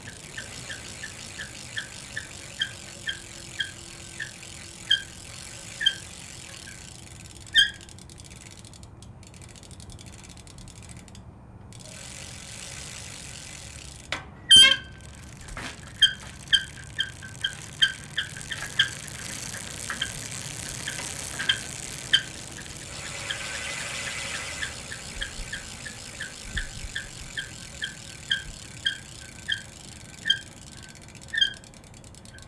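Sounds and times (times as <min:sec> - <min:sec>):
gear shifting: 0:00.0 - 0:07.6, 0:11.8 - 0:31.5
squeaking: 0:14.5 - 0:30.5.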